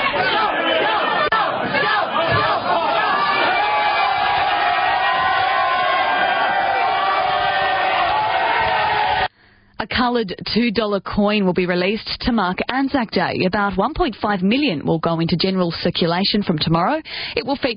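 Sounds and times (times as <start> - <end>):
rowdy university crowd cheering in pub: 0.0 - 9.3
speech: 10.0 - 17.7.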